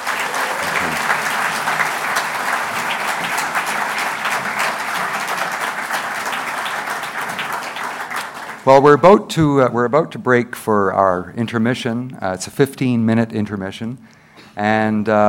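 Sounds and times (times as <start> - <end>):
audience applause: 0.0 - 9.0
speech: 8.7 - 15.2.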